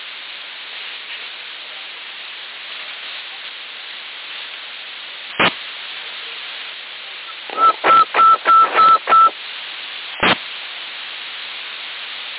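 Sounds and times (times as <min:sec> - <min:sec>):
CB radio static hiss in Sassari, Italy: 0:00.0 - 0:12.3
telephone dialing tones as someone phones Portobello: 0:07.5 - 0:09.3.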